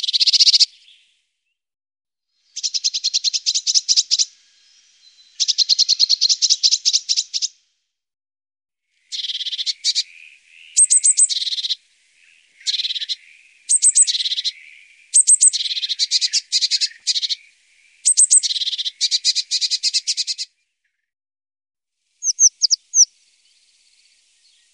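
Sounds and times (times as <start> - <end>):
Eurasian blue tit calling with thin high quick notes: 0.0 - 1.0, 2.6 - 4.3, 5.4 - 7.5, 9.1 - 20.5, 22.2 - 23.1.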